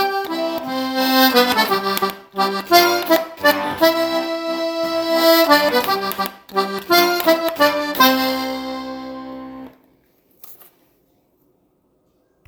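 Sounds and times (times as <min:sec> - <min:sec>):
violin: 0:00.0 - 0:09.8.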